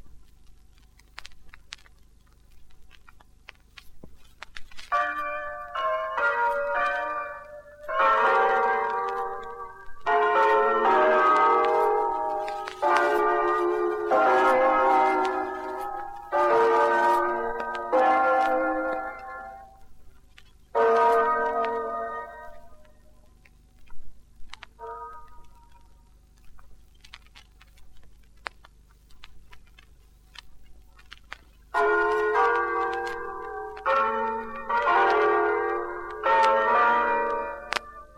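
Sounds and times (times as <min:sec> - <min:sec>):
bells ringing: 0:04.9 - 0:19.8, 0:20.7 - 0:22.9, 0:31.8 - 0:38.1.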